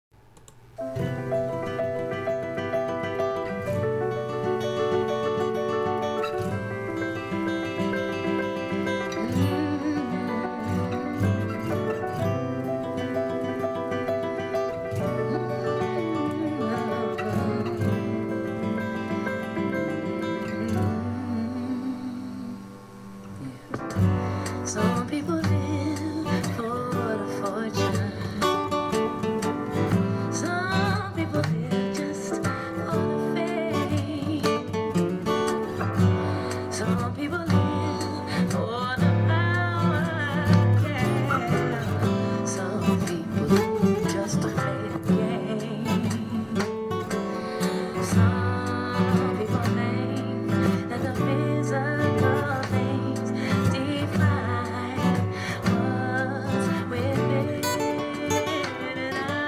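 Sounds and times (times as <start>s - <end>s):
guitar: 0.0s - 59.4s.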